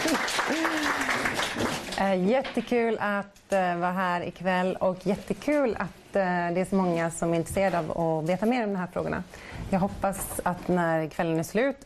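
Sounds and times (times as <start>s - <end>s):
audience applause: 0.0s - 2.0s
speech: 2.1s - 11.8s.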